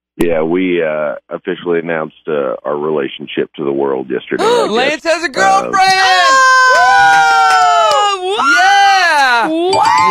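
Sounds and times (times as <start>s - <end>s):
speech: 0.2s - 6.9s, 9.4s - 10.0s
person imitating a wildly cheering crowd with whooping cries: 5.4s - 10.0s.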